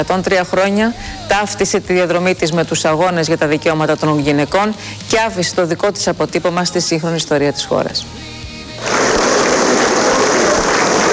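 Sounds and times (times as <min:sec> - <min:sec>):
speech: 0:00.0 - 0:08.2
warm prolonged applause: 0:08.8 - 0:11.1.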